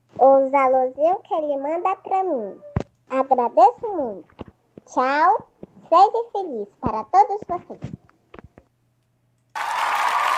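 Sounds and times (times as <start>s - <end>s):
speech: 0.2s - 8.0s
audience applause: 9.5s - 10.3s.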